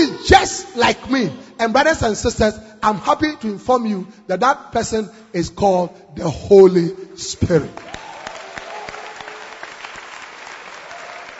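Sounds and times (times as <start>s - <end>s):
speech: 0.3s - 8.0s
audience clapping: 7.7s - 11.3s.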